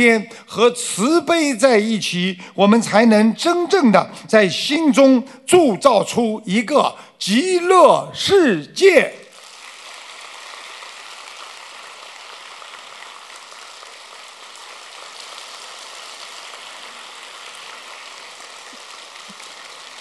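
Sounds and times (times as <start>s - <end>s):
speech: 0.0s - 9.2s
audience applause: 9.6s - 19.9s.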